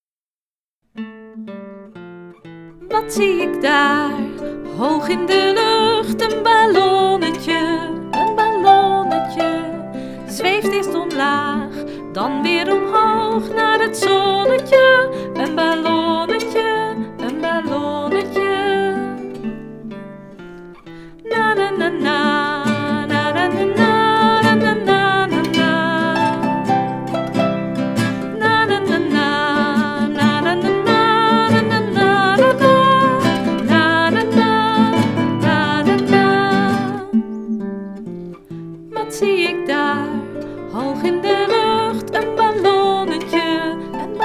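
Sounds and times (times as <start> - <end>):
guitar playing: 0.9 - 44.2.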